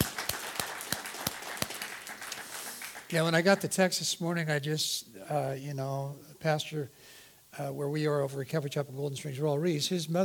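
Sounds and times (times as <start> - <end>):
soft audience applause: 0.0 - 3.4
speech: 3.1 - 10.2.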